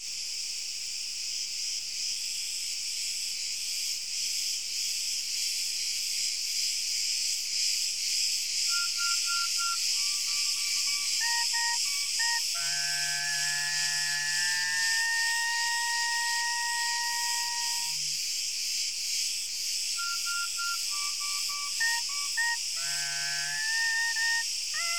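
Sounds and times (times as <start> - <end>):
crickets chirping in a dense high-pitched chorus: 0.0 - 24.9.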